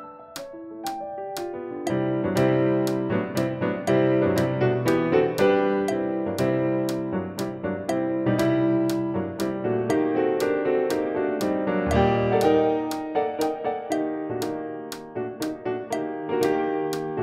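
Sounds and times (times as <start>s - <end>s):
fast piano playing: 0.0s - 17.2s.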